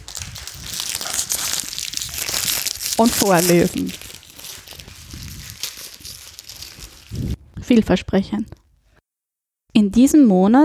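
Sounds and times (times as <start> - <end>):
fortune cookie being cracked open: 0.0 - 7.3
speech: 3.0 - 4.1, 7.7 - 8.6, 9.8 - 10.6.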